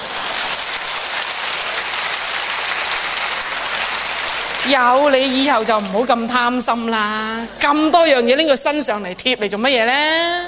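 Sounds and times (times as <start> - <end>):
audience applause: 0.0 - 6.1
speech: 4.6 - 10.4.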